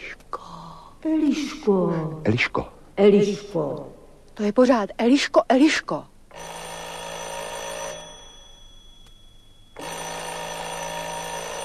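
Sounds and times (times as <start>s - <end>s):
speech: 1.0s - 6.1s
doorbell ringing: 6.3s - 11.6s.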